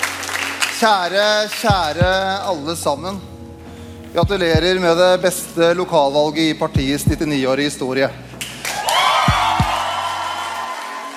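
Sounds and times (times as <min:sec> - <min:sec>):
supporters cheering and applauding at election night rally: 0:00.0 - 0:01.8, 0:08.4 - 0:11.1
speech: 0:00.8 - 0:03.3, 0:04.1 - 0:08.3
low thumps: 0:01.7 - 0:02.4, 0:04.2 - 0:04.9, 0:06.8 - 0:07.4.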